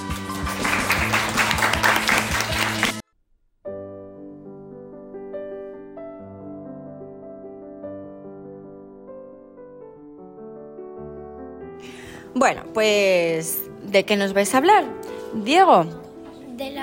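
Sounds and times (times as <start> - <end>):
crowd applause: 0.0 - 3.0
music bed: 0.0 - 3.0, 3.7 - 16.8
speech: 12.4 - 16.0.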